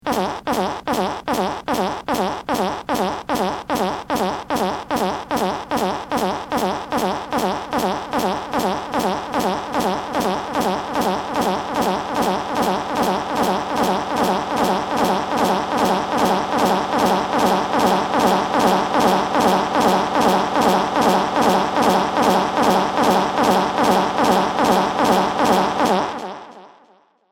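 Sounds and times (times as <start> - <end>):
fart: 0.0 - 26.7.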